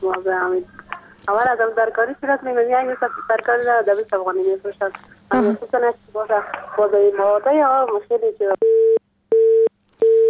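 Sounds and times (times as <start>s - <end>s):
speech: 0.0s - 8.7s
busy tone after a dropped phone call: 8.6s - 10.2s.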